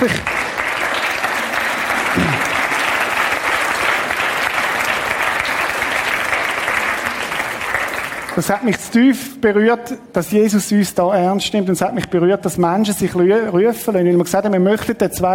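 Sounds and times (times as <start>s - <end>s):
speech: 0.0s - 0.4s, 8.4s - 15.3s
congregation applause during a church service: 0.0s - 9.0s.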